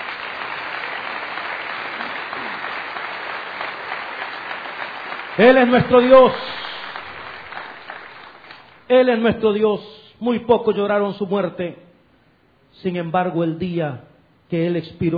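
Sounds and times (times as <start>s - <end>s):
audience applause: 0.0s - 8.8s
speech: 5.4s - 6.6s, 8.9s - 11.8s, 12.8s - 15.1s.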